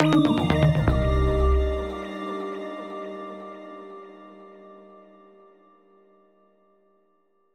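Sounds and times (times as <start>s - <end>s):
news cue bumper music: 0.0s - 2.2s.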